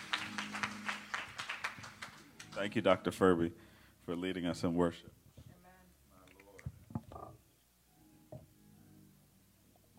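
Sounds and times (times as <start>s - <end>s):
audience clapping hands: 0.0s - 3.0s
speech: 2.6s - 5.2s.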